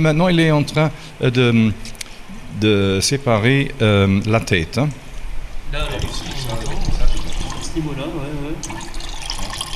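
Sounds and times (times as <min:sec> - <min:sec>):
speech: 0:00.0 - 0:01.9, 0:02.5 - 0:05.0, 0:07.8 - 0:08.9
distilled spirit trickling from a still: 0:05.8 - 0:08.0, 0:08.6 - 0:09.7.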